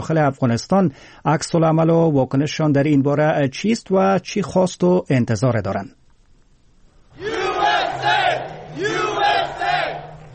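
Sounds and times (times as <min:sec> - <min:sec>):
speech: 0:00.0 - 0:06.0
Donald Trump supporters cheering at US election result: 0:07.1 - 0:10.3.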